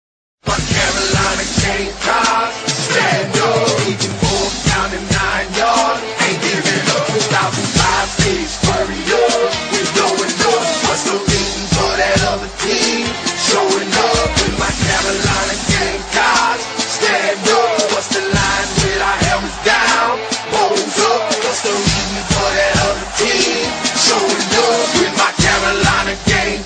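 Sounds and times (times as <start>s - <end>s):
rap music: 0.4s - 26.6s.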